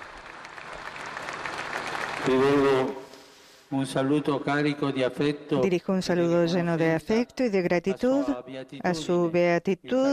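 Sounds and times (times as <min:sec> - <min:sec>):
audience applause: 0:00.0 - 0:03.0
speech: 0:02.2 - 0:03.0, 0:03.7 - 0:10.1.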